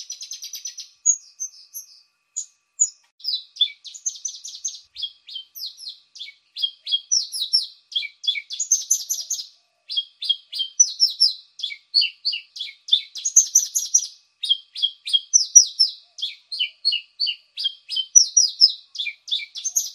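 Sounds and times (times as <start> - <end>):
Javan bushlark song of chirps, falling notes and buzzy trill: 0.0 - 19.9.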